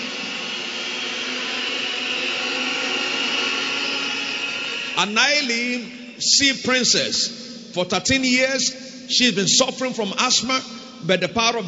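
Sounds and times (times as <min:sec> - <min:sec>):
audience applauding: 0:00.0 - 0:05.5
speech: 0:05.0 - 0:11.6.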